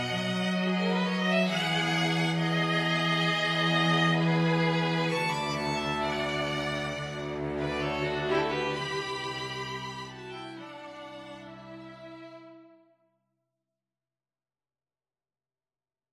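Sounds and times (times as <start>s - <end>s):
string trio playing: 0.0s - 12.8s.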